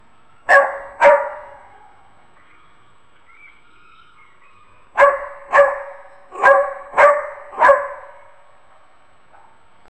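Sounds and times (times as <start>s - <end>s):
worried dogs barking: 0.4s - 2.1s, 4.2s - 8.4s.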